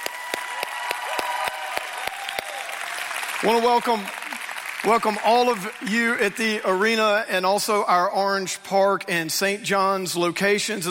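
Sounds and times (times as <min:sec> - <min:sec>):
church congregation in an arena clapping hands: 0:00.0 - 0:07.2
speech: 0:03.4 - 0:04.2, 0:04.8 - 0:10.8.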